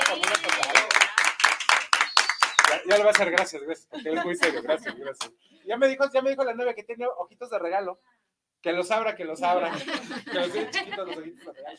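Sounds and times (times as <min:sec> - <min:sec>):
laughter: 0:00.0 - 0:01.0, 0:02.8 - 0:05.3, 0:09.4 - 0:11.7
applause: 0:00.0 - 0:03.6, 0:04.4 - 0:04.6
speech: 0:02.9 - 0:11.7.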